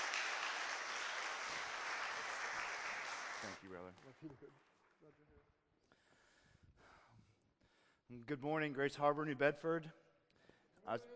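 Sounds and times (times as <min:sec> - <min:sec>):
audience clapping: 0:00.0 - 0:05.1
speech: 0:03.4 - 0:05.6, 0:08.1 - 0:10.0, 0:10.8 - 0:11.1.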